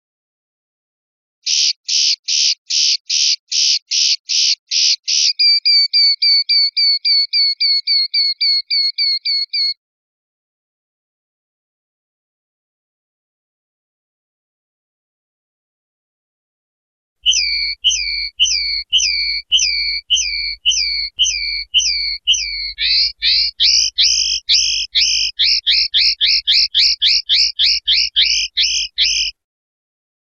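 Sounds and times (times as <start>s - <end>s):
European goldfinch song: 1.4s - 9.8s, 17.2s - 29.4s.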